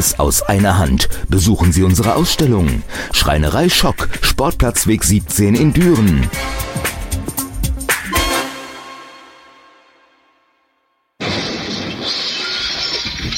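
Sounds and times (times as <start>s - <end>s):
speech: 0.0s - 7.0s
car window glass shattering: 11.2s - 13.3s.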